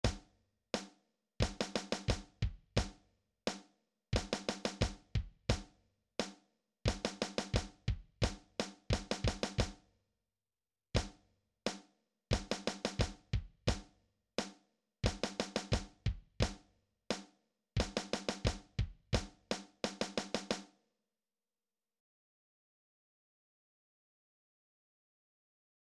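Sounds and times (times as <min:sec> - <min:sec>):
drums: 0:00.0 - 0:09.8, 0:11.0 - 0:20.7.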